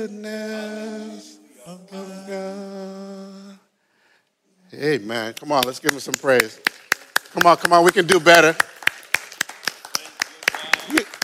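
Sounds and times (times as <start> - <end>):
speech: 0.0 - 2.7, 4.8 - 8.7
audience clapping: 5.3 - 11.2.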